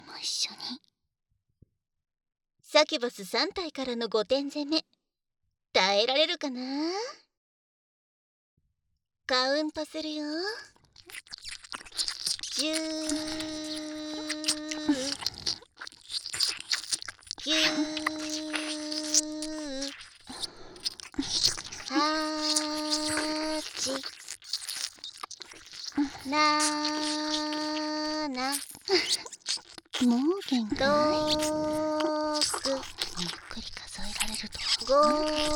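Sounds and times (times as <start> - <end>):
speech: 2.8 - 5.0, 5.8 - 7.2, 9.3 - 11.6, 12.6 - 14.3, 17.4 - 18.5, 26.3 - 29.2, 30.0 - 33.4, 34.4 - 35.5
ASMR ear licking mouth sounds: 10.8 - 35.5
steady vocal tones: 12.6 - 15.6, 17.4 - 24.1, 25.9 - 35.5.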